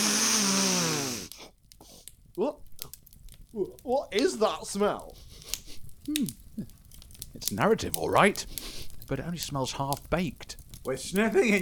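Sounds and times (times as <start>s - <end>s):
short vocal sounds: 0.0s - 1.3s
loud deep rasping sniffing inhale: 0.0s - 2.1s, 5.2s - 5.9s, 8.4s - 9.0s
speech: 2.4s - 2.7s, 3.6s - 5.2s, 6.1s - 6.8s, 7.4s - 11.5s.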